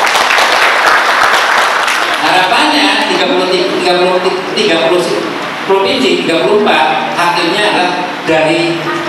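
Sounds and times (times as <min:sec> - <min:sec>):
audience applause: 0:00.0 - 0:02.4
speech: 0:03.2 - 0:08.9.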